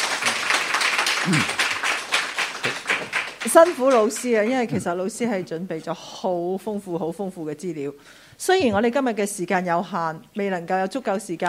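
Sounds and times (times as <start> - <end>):
audience applause: 0.0 - 4.8
speech: 1.2 - 1.6, 3.4 - 11.4.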